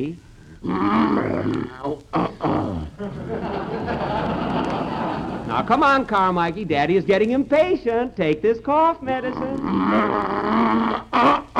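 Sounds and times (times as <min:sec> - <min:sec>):
speech: 0:00.0 - 0:02.3, 0:05.6 - 0:10.5
bear growling: 0:00.4 - 0:03.4, 0:09.1 - 0:11.5
laughter: 0:02.9 - 0:05.9.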